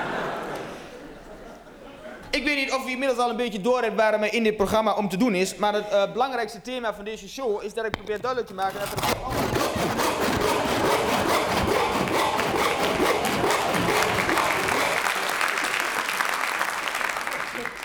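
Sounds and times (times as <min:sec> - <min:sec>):
audience applause: 0:00.0 - 0:01.6, 0:10.5 - 0:17.8
laughter: 0:00.0 - 0:02.4, 0:08.9 - 0:17.8
speech: 0:02.4 - 0:10.0.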